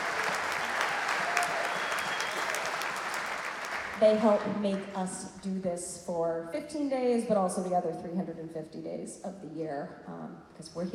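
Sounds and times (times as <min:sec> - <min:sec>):
audience applause: 0:00.0 - 0:05.0
speech: 0:04.0 - 0:10.9.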